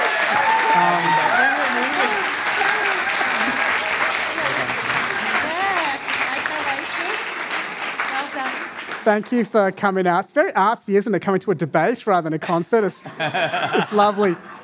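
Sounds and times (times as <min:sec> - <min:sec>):
audience applause: 0:00.0 - 0:09.7
laughter: 0:00.3 - 0:06.0, 0:13.0 - 0:14.6
speech: 0:09.0 - 0:14.6.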